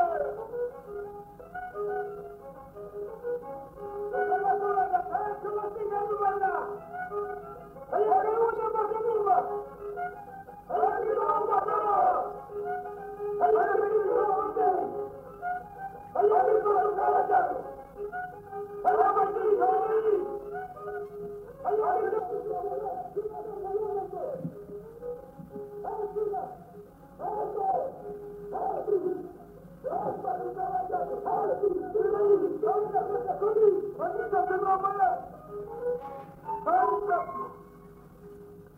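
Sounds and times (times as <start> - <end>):
folk dance shouts: 0.0 - 0.6, 4.1 - 7.2, 7.9 - 9.6, 10.7 - 15.1, 16.1 - 17.8, 18.8 - 20.6, 21.6 - 24.4, 25.8 - 26.6, 27.2 - 35.4, 36.6 - 37.6
violin folk dance: 0.0 - 38.7.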